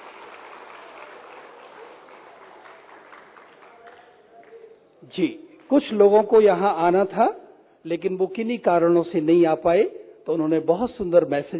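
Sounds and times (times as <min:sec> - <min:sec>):
audience applauding loudly: 0:00.0 - 0:04.7
speech: 0:05.0 - 0:11.5.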